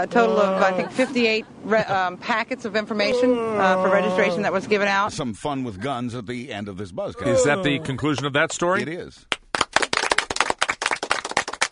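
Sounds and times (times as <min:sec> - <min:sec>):
speech: 0:00.0 - 0:09.4
hand clapping: 0:09.3 - 0:11.7.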